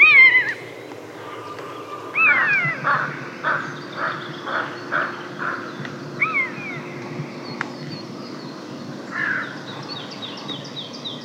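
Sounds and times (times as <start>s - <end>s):
common buzzard mewing calls: 0.0s - 6.9s.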